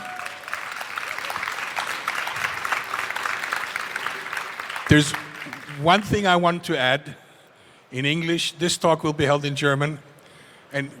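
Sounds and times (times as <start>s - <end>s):
audience applause: 0.0s - 6.1s
speech: 4.9s - 5.2s, 5.8s - 7.2s, 7.9s - 10.1s, 10.7s - 10.9s.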